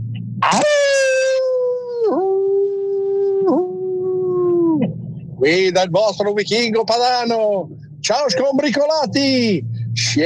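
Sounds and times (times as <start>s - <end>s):
long howl: 0.4s - 5.0s
speech: 5.4s - 10.2s.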